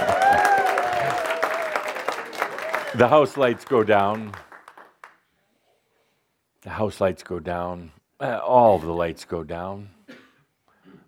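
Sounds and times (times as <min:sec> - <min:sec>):
huge theatre audience applause as the curtain raises: 0:00.0 - 0:05.2
speech: 0:03.0 - 0:04.4, 0:06.6 - 0:10.0.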